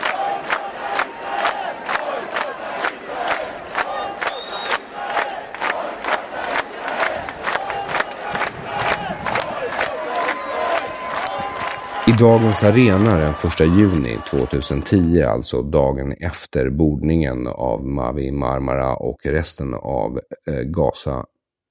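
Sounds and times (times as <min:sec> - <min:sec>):
demonstration crowd chanting: 0:00.0 - 0:15.1
speech: 0:12.2 - 0:21.3.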